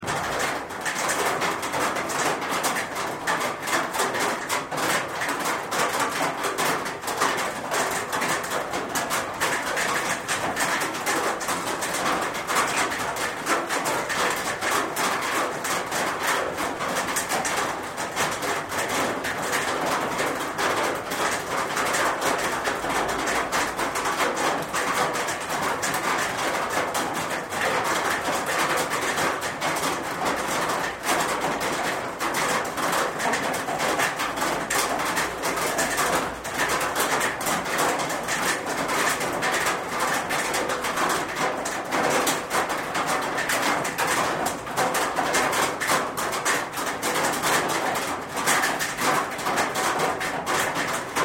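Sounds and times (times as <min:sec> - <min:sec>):
rain on a tin roof: 0:00.0 - 0:51.2.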